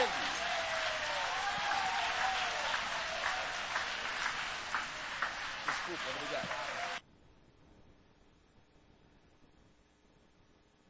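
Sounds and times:
audience applauding: 0.0s - 7.0s
speech: 5.9s - 6.8s.

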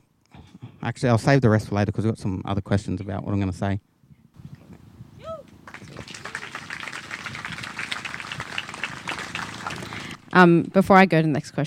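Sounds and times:
speech: 0.8s - 3.9s, 10.4s - 11.6s
audience clapping: 5.6s - 10.2s.

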